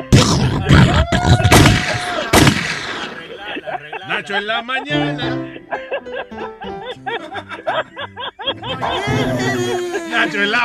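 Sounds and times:
laughter: 0:00.4 - 0:10.6
double gunshot sound effect: 0:01.4 - 0:03.3
speech: 0:04.3 - 0:06.6, 0:07.4 - 0:10.6.

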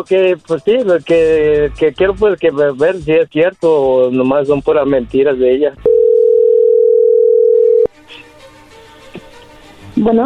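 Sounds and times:
speech: 0:00.0 - 0:06.0, 0:10.0 - 0:10.2
telephone tone as an outgoing call is placed: 0:05.9 - 0:07.9.

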